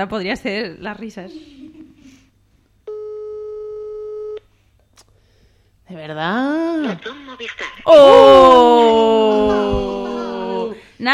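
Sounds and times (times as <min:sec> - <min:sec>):
speech: 0:00.0 - 0:01.7, 0:05.9 - 0:10.1, 0:11.0 - 0:11.1
telephone busy signal of an unanswered call: 0:02.9 - 0:04.4.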